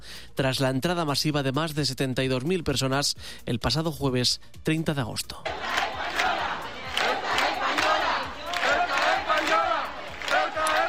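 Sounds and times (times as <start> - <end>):
speech: 0.4 - 5.8
crowd chanting protest slogans: 5.5 - 10.8.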